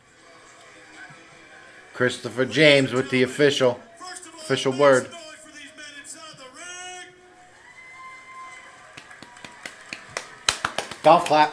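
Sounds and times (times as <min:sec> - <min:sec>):
speech: 0:02.0 - 0:03.9, 0:04.5 - 0:05.2, 0:11.1 - 0:11.5
drawn-out voices whooping: 0:06.5 - 0:10.4
quiet golf clap: 0:08.9 - 0:11.5.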